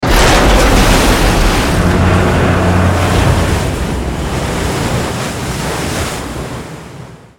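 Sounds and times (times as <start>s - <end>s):
enemy battleship death explosion: 0.0s - 5.1s.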